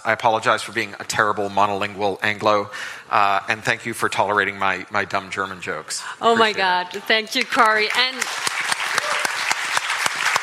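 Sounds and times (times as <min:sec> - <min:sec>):
speech: 0:00.0 - 0:08.5
audience applause: 0:07.4 - 0:10.4.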